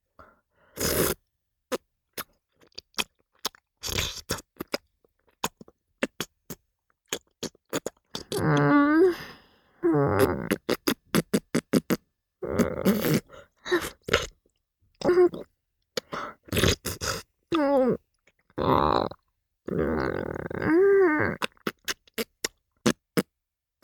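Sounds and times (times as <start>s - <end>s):
slow oral sex sucking sounds: 0.7s - 1.2s, 7.4s - 14.4s, 15.0s - 18.0s, 18.6s - 23.3s.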